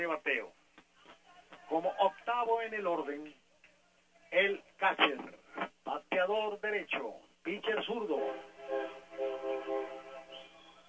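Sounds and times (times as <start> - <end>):
speech: 0.0 - 0.6, 1.7 - 3.4, 4.3 - 10.0
diesel railway locomotive horn blasts at a railroad park: 8.1 - 10.7.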